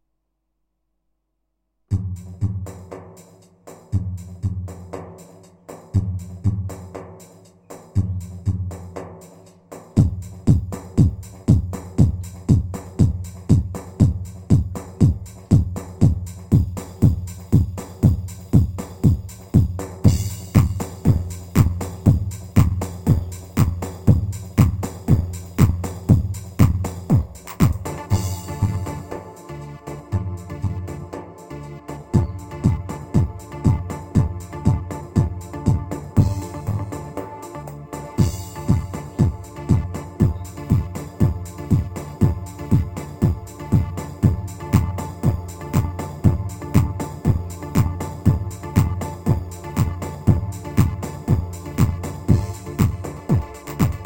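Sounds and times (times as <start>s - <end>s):
Pa 500 keyboard semah rhythm in 2 4 time: 2.0s - 54.0s.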